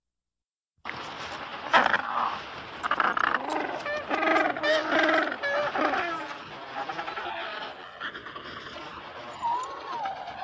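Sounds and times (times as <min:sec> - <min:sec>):
penguin calls: 0:02.8 - 0:10.4.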